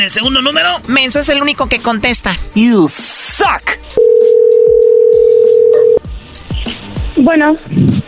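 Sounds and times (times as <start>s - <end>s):
speech: 0.0s - 4.3s, 7.2s - 8.0s
telephone redialing tone: 4.0s - 6.0s.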